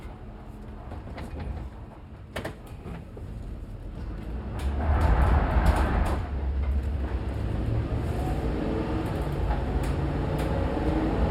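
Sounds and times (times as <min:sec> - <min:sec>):
GMC Savana truck interior while driving: 0:00.0 - 0:11.3
GMC Savana truck engine accelerating and decelerating fast: 0:03.9 - 0:11.3.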